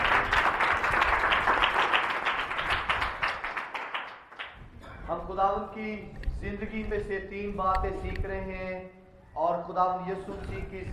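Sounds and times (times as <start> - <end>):
audience applause: 0.0 - 4.6
speech: 5.4 - 10.9.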